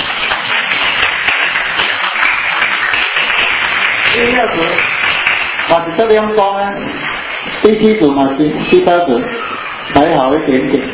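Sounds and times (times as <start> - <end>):
group clapping: 0.0 - 6.4
speech: 4.2 - 4.9, 5.7 - 10.9.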